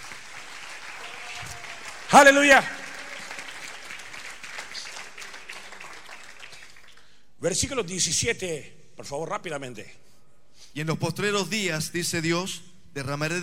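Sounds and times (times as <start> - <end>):
audience applauding: 0.0 - 7.2
speech: 1.4 - 2.8, 7.4 - 10.0, 10.7 - 13.4.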